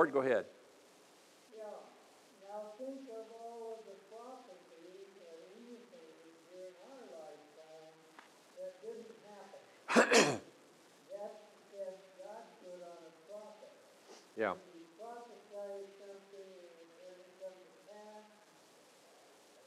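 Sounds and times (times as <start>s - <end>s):
talking: 1.5s - 10.4s, 11.1s - 13.8s, 14.4s - 18.4s
man clearing throat: 9.9s - 10.4s.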